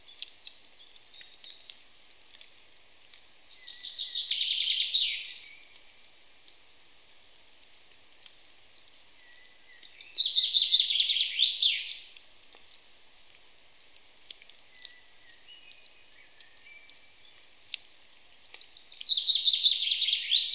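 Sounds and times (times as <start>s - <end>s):
common chaffinch Fringilla coelebs singing: 3.4s - 5.9s, 9.2s - 12.1s, 14.0s - 20.5s.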